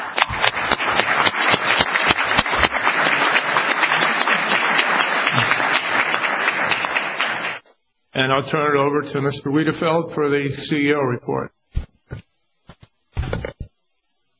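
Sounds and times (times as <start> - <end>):
applause: 0.0 - 7.6
speech: 8.2 - 11.6.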